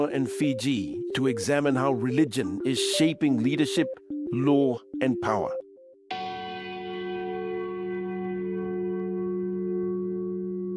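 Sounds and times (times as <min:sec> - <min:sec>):
speech: 0:00.0 - 0:05.6
church bells ringing in Apia, Samoa: 0:06.1 - 0:10.7.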